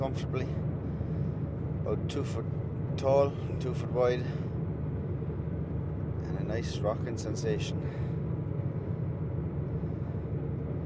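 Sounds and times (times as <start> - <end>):
speech: 0.0 - 0.7, 1.9 - 4.5, 6.5 - 8.0
boat engine droning heard from cabin: 0.0 - 10.8.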